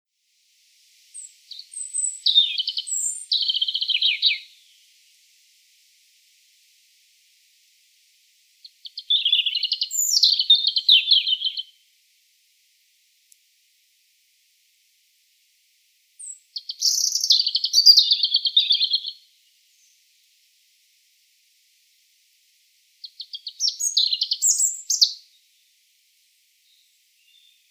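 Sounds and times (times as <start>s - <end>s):
European robin song with high trills: 1.2s - 4.9s, 8.6s - 11.8s, 16.2s - 19.2s, 23.0s - 25.4s, 26.6s - 27.6s.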